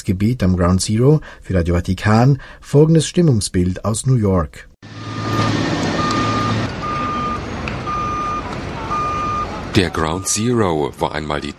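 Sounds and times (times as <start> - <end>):
speech: 0.0 - 5.7, 9.8 - 11.5
engine and construction noise at Ground Zero: 4.8 - 11.5
truck reversing alarm beeping at a construction site: 4.9 - 11.5.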